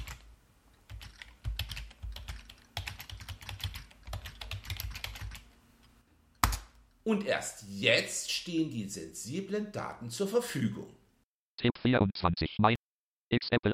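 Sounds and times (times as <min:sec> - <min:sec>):
computer keyboard typing as a password is entered: 0:00.0 - 0:05.5
speech: 0:07.1 - 0:11.0, 0:11.6 - 0:13.7.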